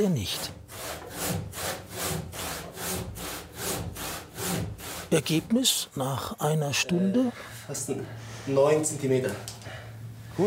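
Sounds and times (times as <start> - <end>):
speech: 0.0 - 1.0, 5.1 - 9.6
thin hand saw cutting through wood: 0.2 - 5.4.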